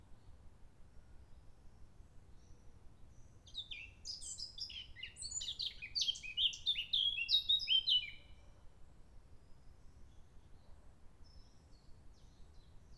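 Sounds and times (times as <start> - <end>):
blackcap singing: 3.5 - 8.2.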